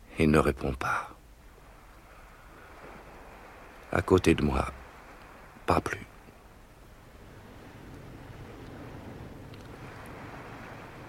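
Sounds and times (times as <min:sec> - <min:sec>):
sea washing onto a shore: 0:00.0 - 0:11.0
speech: 0:00.2 - 0:01.1, 0:03.9 - 0:04.8, 0:05.7 - 0:06.1.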